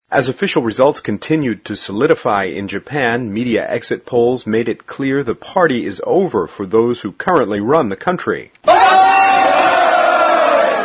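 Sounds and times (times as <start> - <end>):
speech: 0.1 - 9.0
crowd cheering at a Democratic Party of Japan election headquarters on election night: 8.6 - 10.8.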